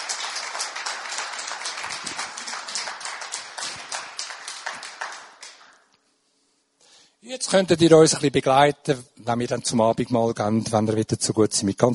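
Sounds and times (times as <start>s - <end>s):
audience applause for worship team: 0.0s - 5.8s
speech: 7.3s - 11.9s.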